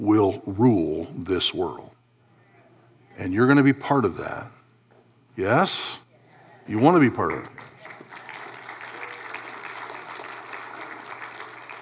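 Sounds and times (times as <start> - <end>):
speech: 0.0 - 1.9, 3.2 - 4.6, 5.4 - 6.0, 6.7 - 7.7
audience clapping: 7.2 - 11.7.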